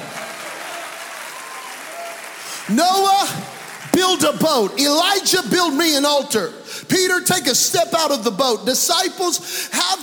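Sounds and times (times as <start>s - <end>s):
audience clapping hands: 0.0s - 5.4s
speech: 2.7s - 10.0s.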